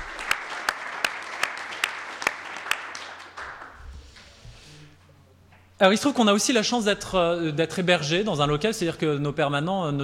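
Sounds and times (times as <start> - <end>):
audience applause: 0.0 - 3.8
speech: 5.8 - 10.0.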